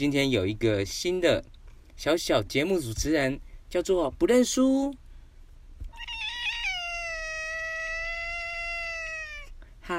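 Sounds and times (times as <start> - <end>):
speech: 0.0 - 5.0
cat meowing: 5.9 - 9.9.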